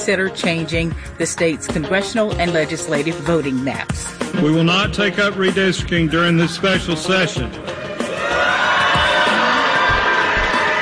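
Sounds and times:
speech: 0.0 - 8.5
protesters cheering in capitol rotunda: 7.6 - 10.8.

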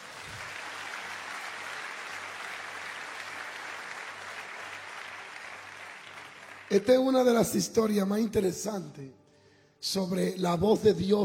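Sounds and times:
audience applause: 0.0 - 7.1
speech: 6.7 - 9.2, 9.8 - 11.2.

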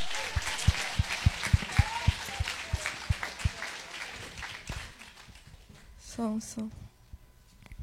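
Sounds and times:
audience applause: 0.0 - 5.5
speech: 6.2 - 6.8.

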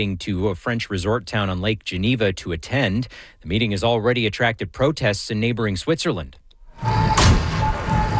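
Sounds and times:
speech: 0.0 - 6.9
Tesla torched by demonstrators exploding in the streets of Geneva: 7.0 - 8.0.

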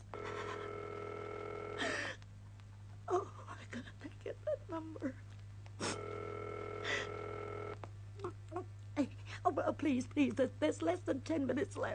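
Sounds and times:
telephone line tone as an operator rings a number: 0.1 - 1.9, 5.9 - 7.8
speech: 3.7 - 5.3, 9.6 - 11.9.

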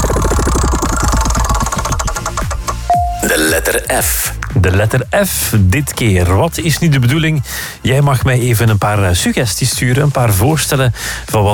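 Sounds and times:
music wheel spinning to pick a letter: 0.0 - 3.2
speech: 3.3 - 11.5.

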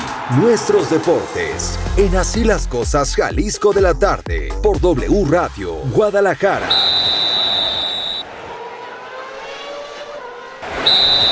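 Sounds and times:
speech: 0.3 - 7.2, 10.9 - 11.3
referee whistle blasts: 6.6 - 8.3, 10.6 - 11.3.

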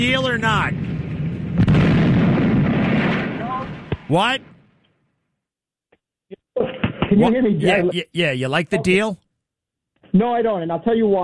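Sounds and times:
speech: 0.0 - 1.0, 3.6 - 4.5, 7.1 - 9.2, 10.1 - 11.2
gunshot: 0.7 - 4.7.

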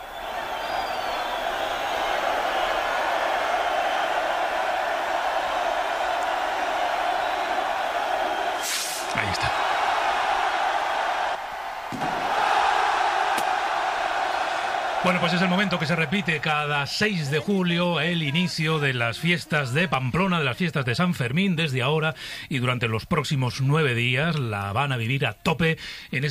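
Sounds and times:
festival crowd cheering: 0.0 - 22.0
chupinazo rocket burst: 8.6 - 9.1
speech: 15.1 - 26.2.

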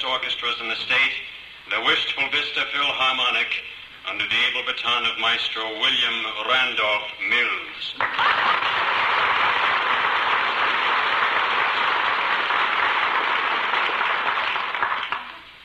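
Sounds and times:
speech: 0.0 - 9.2
audience applauding: 8.0 - 15.5.

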